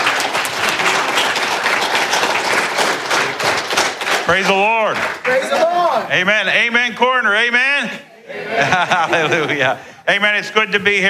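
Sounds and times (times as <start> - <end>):
church audience applause welcoming a guest speaker: 0.0 - 5.9
speech: 4.3 - 11.0
laughter: 8.2 - 10.0.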